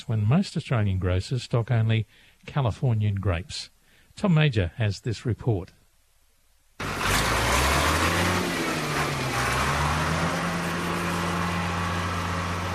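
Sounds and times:
speech: 0.0 - 5.8
heavy plough breaking ground on virgin soil alongside the Flinders River: 6.8 - 12.7.

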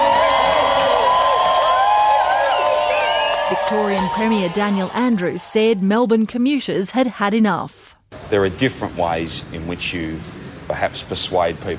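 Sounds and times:
crowd in Melbourne cheering on arrested climate protesters: 0.0 - 5.9
speech: 3.6 - 11.7.

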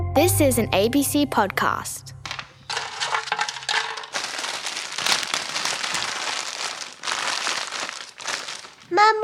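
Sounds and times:
speech: 0.2 - 2.2, 8.9 - 9.2
chip packets and muesli bar wrappers crinkling as they are torn open: 2.3 - 9.2.

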